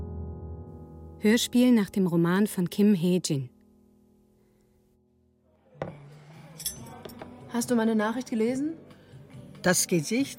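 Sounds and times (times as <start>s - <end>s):
speech: 1.2s - 3.5s, 7.6s - 8.8s, 9.6s - 10.3s
chopsticks taken from cutlery basket: 6.6s - 7.3s.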